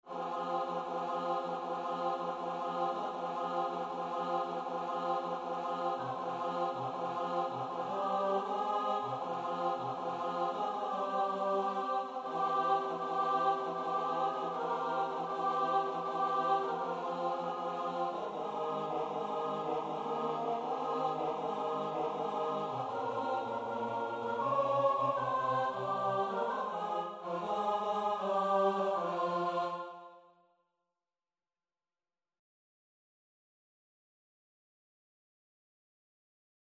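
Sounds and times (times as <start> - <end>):
choir singing: 0.0 - 30.3.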